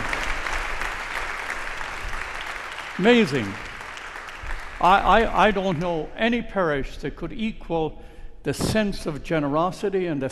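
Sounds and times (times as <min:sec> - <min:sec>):
Holy Family parish congregation applauding: 0:00.0 - 0:06.1
speech: 0:03.0 - 0:03.7, 0:04.8 - 0:10.3.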